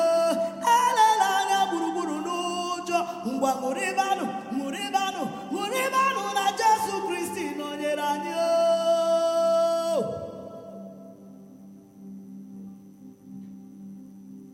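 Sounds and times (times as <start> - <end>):
chanting: 0.0 - 11.3.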